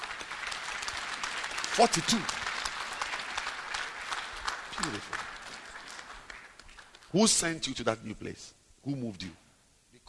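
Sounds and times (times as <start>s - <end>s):
crowd applauding: 0.0s - 7.2s
speech: 1.8s - 2.4s, 4.8s - 5.2s, 7.1s - 9.4s.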